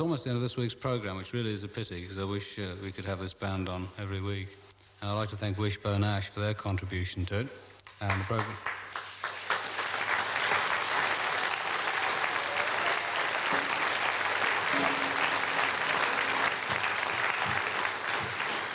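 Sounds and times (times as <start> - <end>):
speech: 0.0 - 8.8
audience applause: 8.1 - 18.7.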